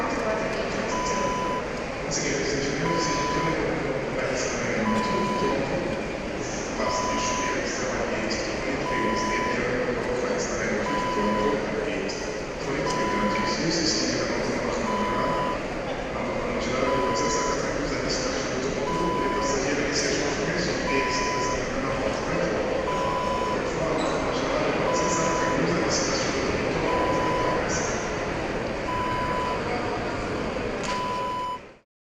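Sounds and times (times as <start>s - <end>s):
airport terminal ambience: 0.0s - 31.8s.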